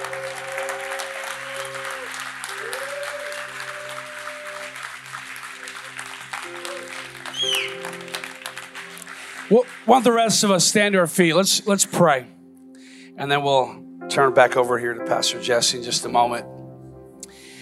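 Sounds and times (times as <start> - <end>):
audience hand clapping: 0.0 - 11.0
speech: 9.5 - 12.4, 13.2 - 16.5.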